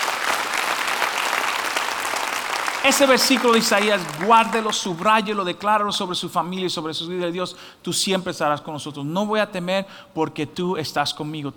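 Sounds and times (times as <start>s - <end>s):
church congregation clapping in praise to God: 0.0s - 6.0s
speech: 2.8s - 11.5s.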